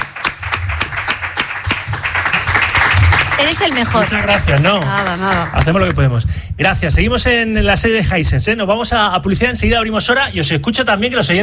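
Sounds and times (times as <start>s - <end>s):
applause: 0.0s - 6.2s
speech: 3.4s - 11.4s.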